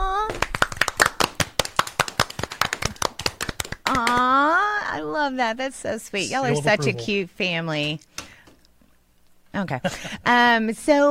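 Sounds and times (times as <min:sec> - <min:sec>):
round of applause from a small group: 0:00.3 - 0:04.3
speech: 0:05.0 - 0:08.1, 0:09.6 - 0:11.0.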